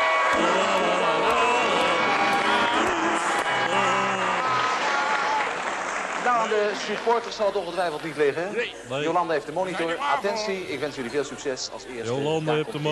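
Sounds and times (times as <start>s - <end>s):
audience cheering and whooping: 0.0s - 6.9s
audience applause: 0.0s - 8.5s
speech: 6.5s - 12.8s.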